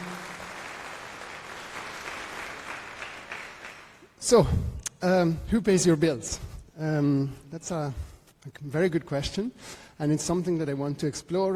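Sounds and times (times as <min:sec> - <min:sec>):
audience applause: 0:00.0 - 0:04.2
speech: 0:04.2 - 0:11.5.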